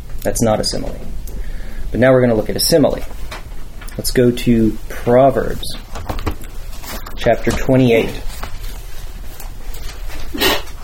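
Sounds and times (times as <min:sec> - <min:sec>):
low rumble: 0:00.0 - 0:10.4
speech: 0:00.2 - 0:01.2, 0:01.9 - 0:03.2, 0:04.0 - 0:05.9, 0:07.2 - 0:08.3
sneeze: 0:10.3 - 0:10.8.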